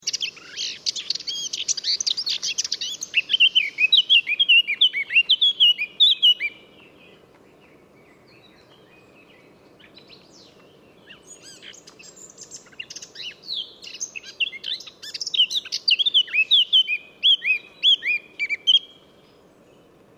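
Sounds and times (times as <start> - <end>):
Eurasian blackcap song: 0.0 - 20.1.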